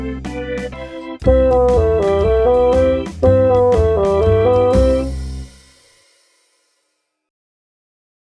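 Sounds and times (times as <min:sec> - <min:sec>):
bassoon: 0:01.2 - 0:05.5.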